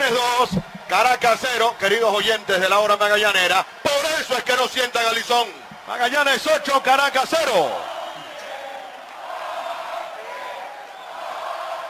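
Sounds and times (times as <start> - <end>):
baseball stadium crowd in Valencia roaring for a strikeout: 0.0 - 11.8
speech: 0.1 - 7.9.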